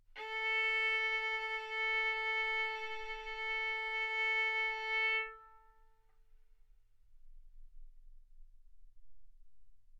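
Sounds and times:
violin arco on A string: 0:00.0 - 0:06.0.

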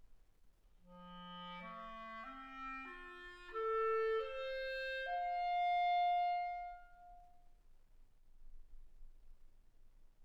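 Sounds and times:
clarinet: 0:00.9 - 0:07.6.

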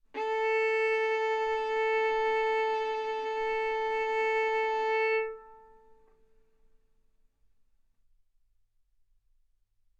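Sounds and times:
violin bowed mezzo-forte on the A string, A4 and B4: 0:00.2 - 0:06.1.

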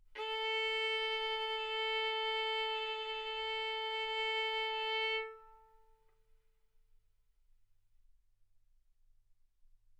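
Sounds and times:
violin bowed mezzo-forte on the A string, A4 and B4: 0:00.1 - 0:05.9.

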